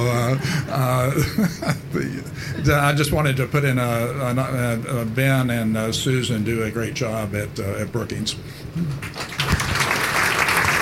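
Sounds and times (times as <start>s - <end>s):
laughter: 0.0s - 3.0s
speech: 0.0s - 9.3s
audience applause: 8.9s - 10.8s.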